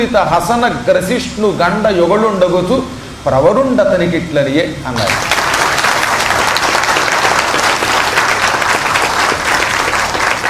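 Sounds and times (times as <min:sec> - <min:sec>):
speech: 0:00.0 - 0:05.4
audience applause: 0:05.0 - 0:10.4.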